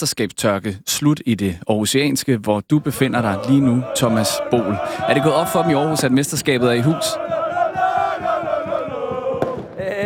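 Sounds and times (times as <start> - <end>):
speech: 0.0 - 7.4
crowd celebrating football championship in an Aarhus street: 2.8 - 10.0
people singing along: 2.8 - 10.0.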